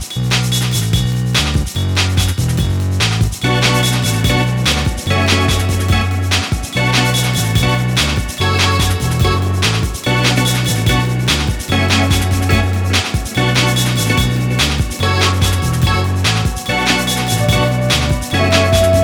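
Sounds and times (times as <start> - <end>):
dub music: 0.1 - 19.0.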